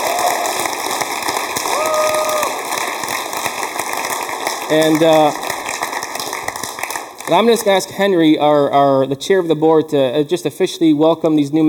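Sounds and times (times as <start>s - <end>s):
people cheering: 0.0s - 7.7s
audience applause: 0.0s - 7.9s
speech: 4.7s - 5.4s, 7.3s - 11.6s.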